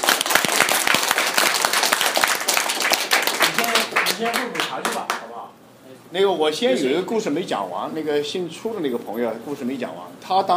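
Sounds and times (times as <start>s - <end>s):
audience applause: 0.0s - 5.3s
speech: 4.2s - 10.5s.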